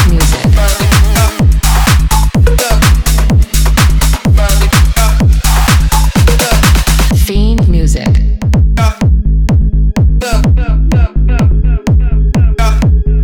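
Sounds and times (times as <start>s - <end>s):
tech house music at 126 bpm: 0.0s - 13.2s.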